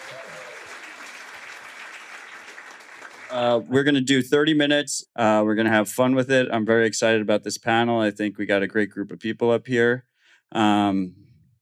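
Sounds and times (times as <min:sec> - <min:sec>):
audience applause: 0:00.0 - 0:03.6
speech: 0:03.3 - 0:11.3.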